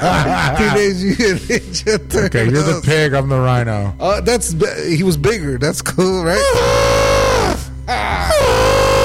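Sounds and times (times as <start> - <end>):
laughter: 0.0 - 2.8
speech: 0.0 - 7.0
person imitating an elephant call: 6.4 - 9.0.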